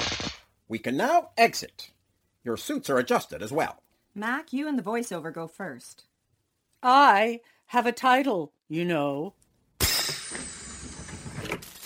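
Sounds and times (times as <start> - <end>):
crackling footsteps: 0.0 - 0.4
speech: 0.7 - 6.1, 6.8 - 9.4.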